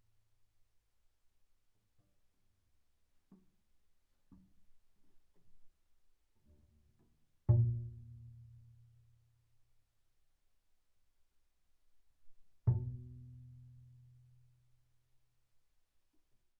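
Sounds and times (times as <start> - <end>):
double bass pizzicato on the A string: 7.5 - 9.0, 12.7 - 14.4.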